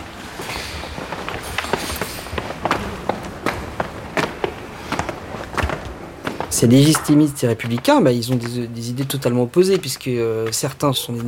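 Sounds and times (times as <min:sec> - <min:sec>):
footsteps climbing stairs: 0:00.0 - 0:11.2
noisy loud background: 0:00.0 - 0:11.2
speech: 0:06.6 - 0:11.2.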